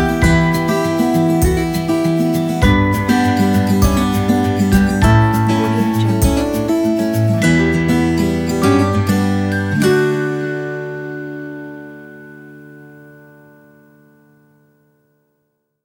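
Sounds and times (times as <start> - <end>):
positive folk music: 0.0 - 11.5.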